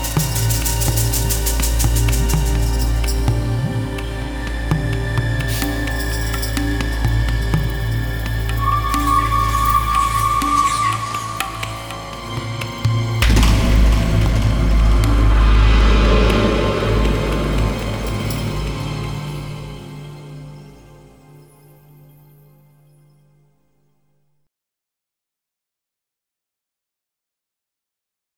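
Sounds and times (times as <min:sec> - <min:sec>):
mystic rainforest ambience: 0:00.0 - 0:21.0.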